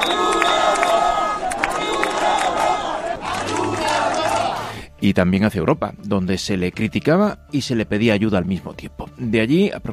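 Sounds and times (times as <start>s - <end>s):
protesters chanting and shouting slogans: 0.0s - 4.8s
speech: 5.0s - 9.9s.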